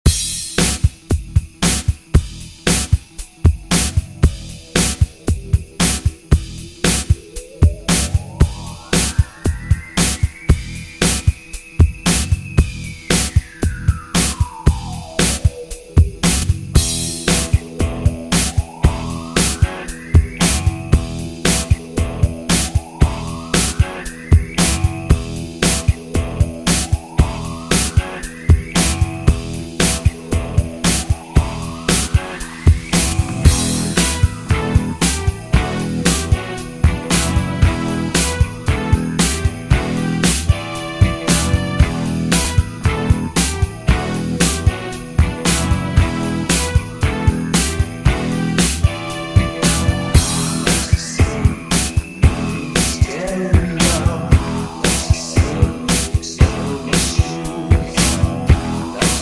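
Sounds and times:
1980s DJ intro music: 0.1s - 59.1s.

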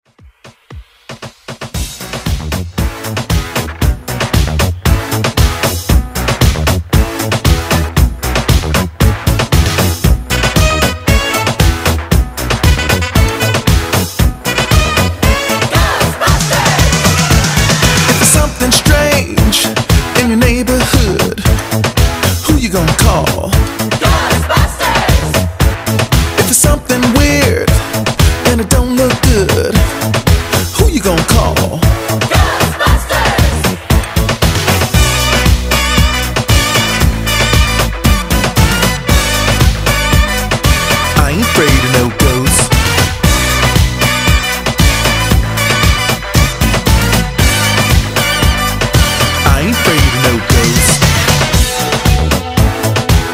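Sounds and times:
Moombahton beat on Redrum drum machine: 0.1s - 53.3s.

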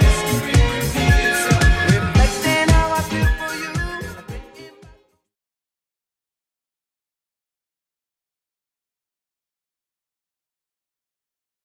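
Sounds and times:
1970s style music at 112 bpm: 0.0s - 5.2s.

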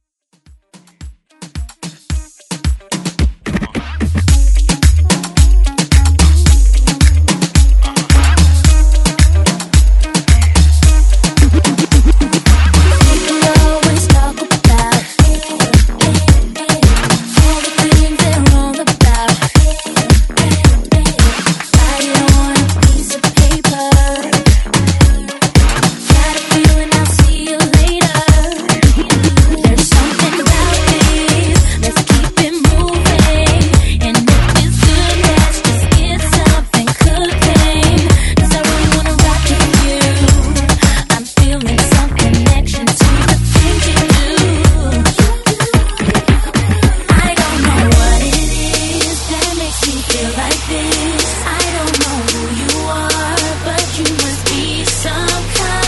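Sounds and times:
moombahton music: 0.3s - 55.8s.

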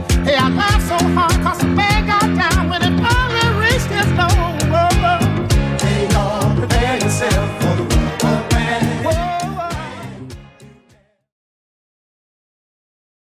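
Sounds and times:
70s style Redrum drum machine beat: 0.0s - 10.6s.

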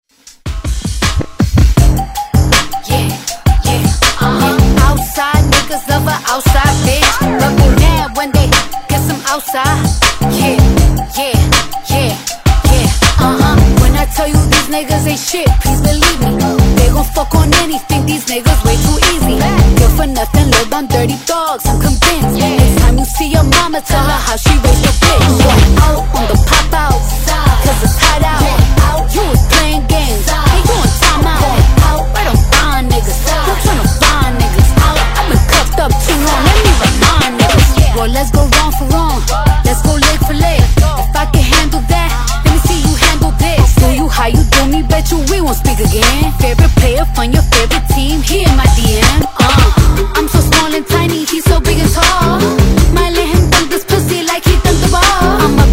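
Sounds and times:
hip hop beat: 0.1s - 55.7s.

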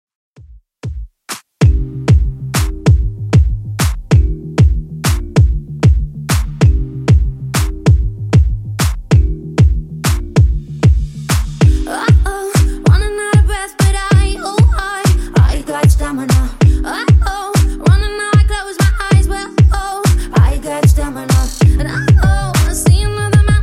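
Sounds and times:
music at 96 bpm: 0.4s - 23.6s.

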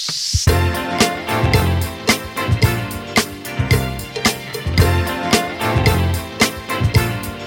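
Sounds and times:
funk music at 111 BPM: 0.4s - 7.4s.

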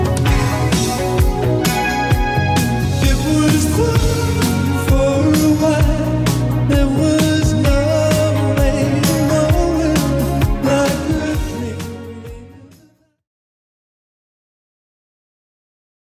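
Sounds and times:
clean 80s drum machine beat: 0.0s - 12.6s.

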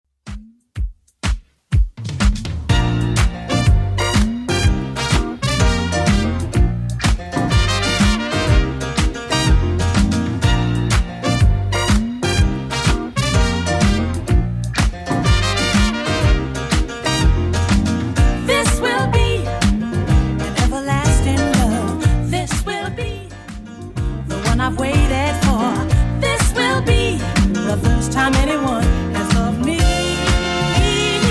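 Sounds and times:
1970s style music at 124 bpm: 0.2s - 31.2s.

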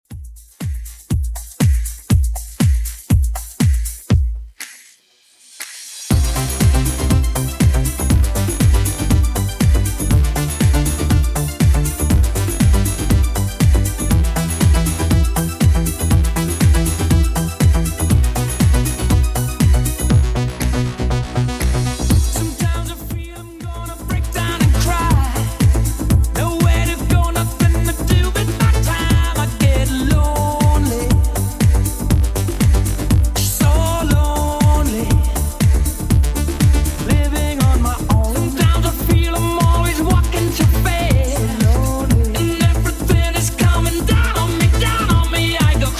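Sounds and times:
90s-style beat at 120 bpm: 0.0s - 45.9s.

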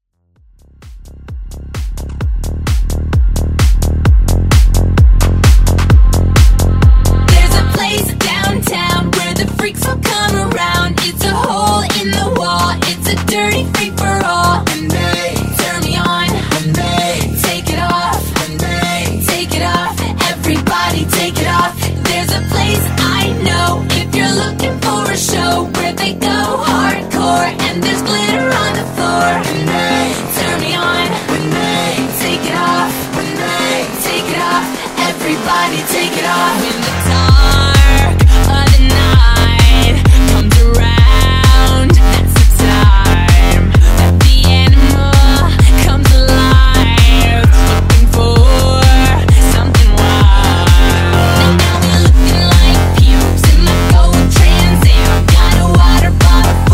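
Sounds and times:
house music vocals: 1.0s - 56.7s.

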